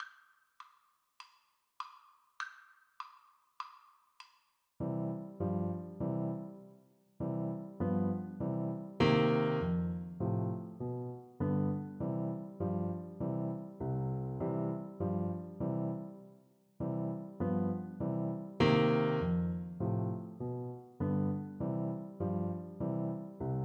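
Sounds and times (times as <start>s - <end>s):
piano duet: 4.8s - 23.6s.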